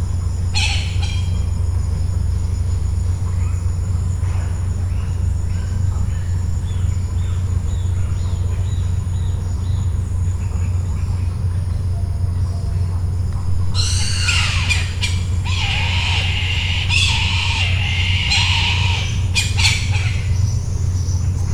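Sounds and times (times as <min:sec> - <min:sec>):
steady low hum: 0:00.0 - 0:21.5
bird harsh squawking: 0:13.8 - 0:20.6.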